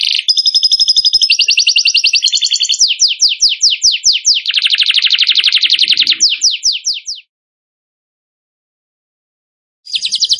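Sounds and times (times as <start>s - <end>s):
bird song of falling whistled notes: 0.0s - 7.3s, 9.9s - 10.3s.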